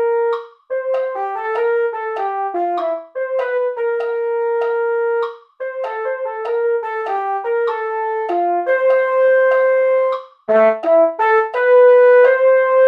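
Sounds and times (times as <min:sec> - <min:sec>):
MIDI mellophone: 0:00.0 - 0:12.8.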